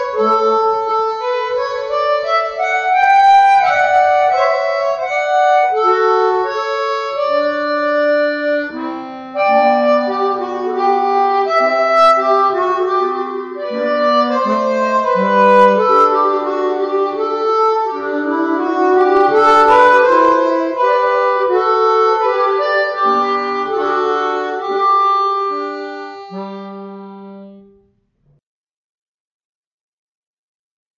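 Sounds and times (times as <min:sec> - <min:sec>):
chromatic harmonica playing minuet with echo effect: 0:00.0 - 0:27.8.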